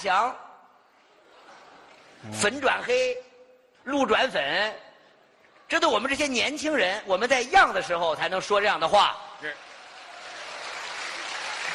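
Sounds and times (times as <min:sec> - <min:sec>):
speech: 0:00.0 - 0:00.5, 0:02.2 - 0:04.9, 0:05.7 - 0:09.7
audience clapping: 0:09.4 - 0:11.7.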